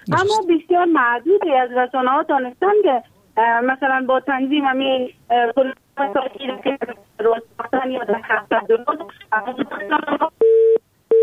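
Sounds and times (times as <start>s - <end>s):
caller's voice over a phone-filtered line: 0.0s - 0.4s, 7.8s - 10.3s
speech: 0.1s - 10.8s.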